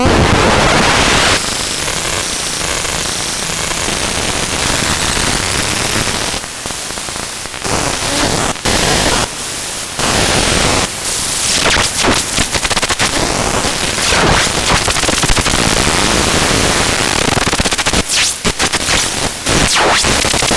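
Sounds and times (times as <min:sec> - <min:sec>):
noise: 0:00.0 - 0:20.5.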